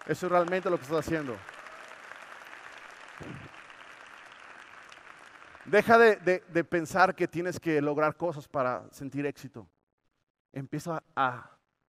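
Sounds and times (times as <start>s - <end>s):
speech: 0.0s - 1.6s, 3.2s - 3.5s, 5.7s - 9.8s, 10.5s - 11.6s
audience applause: 0.0s - 6.1s.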